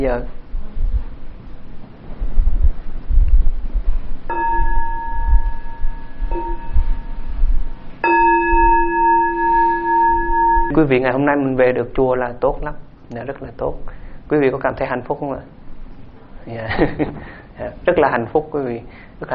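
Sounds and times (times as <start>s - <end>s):
speech: 0.0s - 0.4s, 10.8s - 15.6s, 16.4s - 19.3s
steady windy rumble: 0.0s - 9.0s
meditation bell struck to begin sitting meditation at a Buddhist temple: 4.3s - 11.4s.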